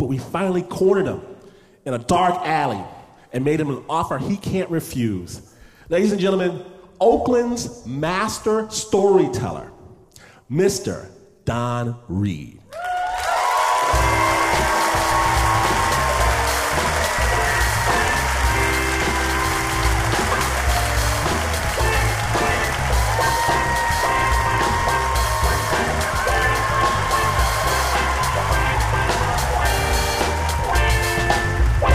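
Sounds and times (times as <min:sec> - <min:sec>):
speech: 0:00.1 - 0:09.7, 0:10.5 - 0:12.9
audience applause: 0:12.7 - 0:31.9.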